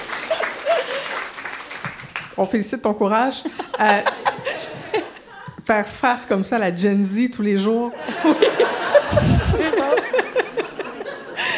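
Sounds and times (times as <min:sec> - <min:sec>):
applause: 0:00.0 - 0:02.4
laughter: 0:00.2 - 0:01.3, 0:03.4 - 0:05.6, 0:08.0 - 0:11.5
speech: 0:02.4 - 0:04.3, 0:05.7 - 0:09.3.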